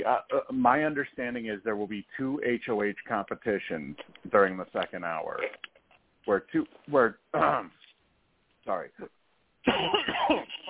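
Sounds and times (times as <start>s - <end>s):
speech: 0.0s - 7.8s, 8.6s - 10.6s
throat-clearing coughs from something caught in the throat: 9.6s - 10.6s.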